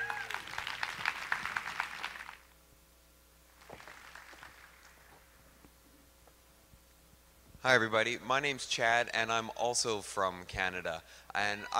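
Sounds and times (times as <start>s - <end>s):
audience applause: 0.0s - 2.5s, 3.6s - 5.4s
speech: 7.6s - 11.7s.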